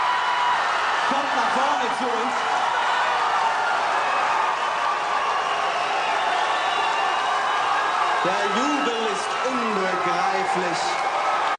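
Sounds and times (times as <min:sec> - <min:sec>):
audience cheering: 0:00.0 - 0:11.5
speech: 0:01.1 - 0:02.6, 0:08.2 - 0:11.0.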